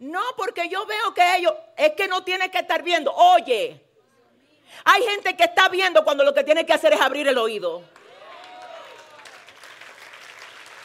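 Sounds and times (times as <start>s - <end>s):
speech: 0.2s - 3.9s, 4.7s - 8.0s
audience applause: 8.0s - 10.8s.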